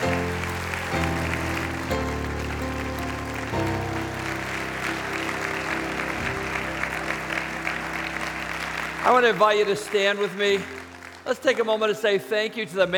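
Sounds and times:
audience clapping: 0.0s - 12.9s
speech: 9.1s - 12.9s.

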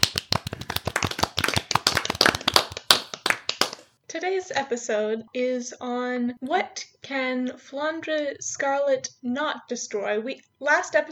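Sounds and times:
round of applause: 0.0s - 3.8s
speech: 4.1s - 11.1s.

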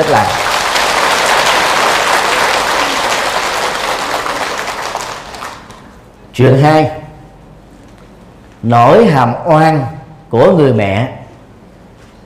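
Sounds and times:
speech: 0.0s - 0.4s, 6.4s - 7.0s, 8.6s - 11.2s
crowd applauding loudly: 0.0s - 5.8s.

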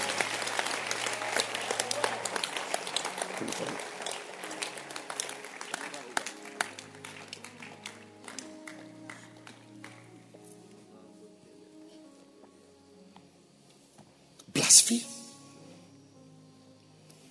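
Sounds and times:
audience clapping hands: 0.0s - 10.2s.

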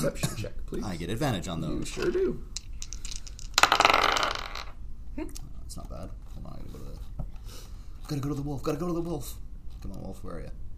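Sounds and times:
speech: 0.0s - 2.6s, 8.1s - 10.6s
dice rolling on a hard tabletop: 1.9s - 4.8s.

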